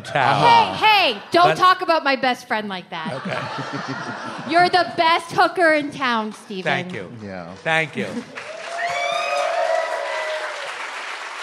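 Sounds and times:
laughter: 0.0s - 1.7s, 3.0s - 5.8s
speech: 0.0s - 8.5s
tavern crowd applauding: 5.8s - 11.4s
voices whooping and cheering: 8.4s - 10.8s.

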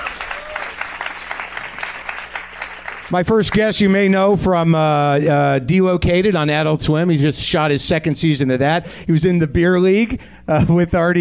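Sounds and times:
audience applause for a comedy show guest: 0.0s - 4.2s
speech: 3.1s - 11.1s.

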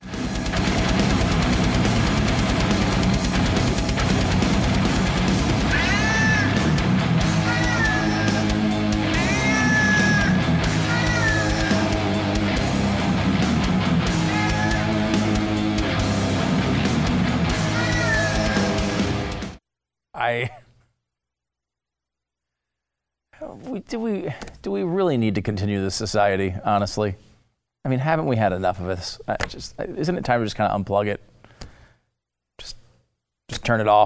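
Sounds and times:
heavy metal song performed by cats: 0.0s - 19.6s
speech: 23.5s - 31.3s, 33.6s - 34.0s.

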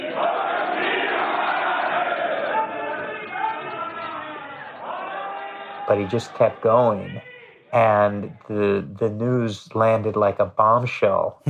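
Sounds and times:
opposition politicians heckling and booing in parliament: 0.0s - 8.8s
speech: 5.9s - 11.4s.

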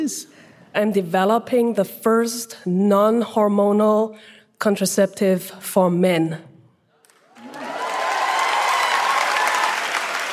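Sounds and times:
speech: 0.0s - 6.5s
audience applause: 7.1s - 10.3s.

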